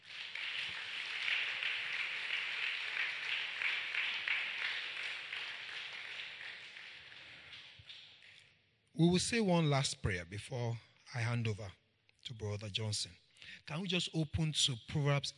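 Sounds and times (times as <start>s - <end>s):
audience applause: 0.0s - 7.6s
speech: 9.0s - 15.3s.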